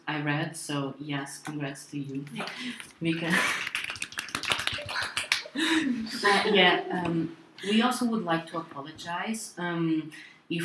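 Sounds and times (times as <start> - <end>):
speech: 0.2 - 3.8, 5.5 - 10.6
people clapping: 2.4 - 5.8.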